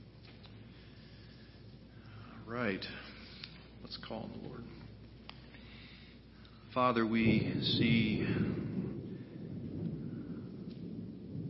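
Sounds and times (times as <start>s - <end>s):
thunder rumbling during an outdoor prayer: 0.0s - 11.4s
speech: 2.5s - 3.2s, 3.8s - 4.9s, 6.8s - 8.7s.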